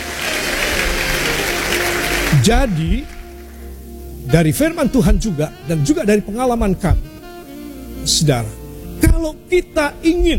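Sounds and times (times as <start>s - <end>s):
church congregation applauding: 0.0s - 3.9s
speech: 2.4s - 3.2s, 4.3s - 7.1s, 8.0s - 10.3s.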